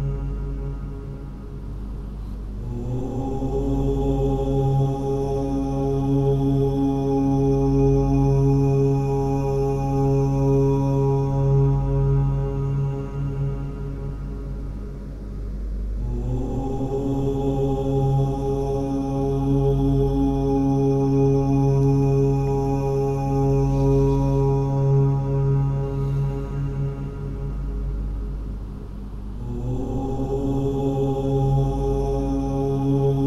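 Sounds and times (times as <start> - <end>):
binaural white noise: 0.0 - 33.2
mantra chanting: 2.6 - 14.3, 16.0 - 27.8, 29.4 - 33.2.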